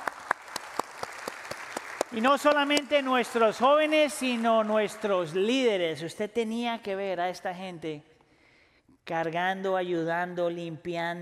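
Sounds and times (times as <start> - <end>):
audience applause: 0.0 - 5.2
speech: 2.1 - 8.1, 9.1 - 11.2.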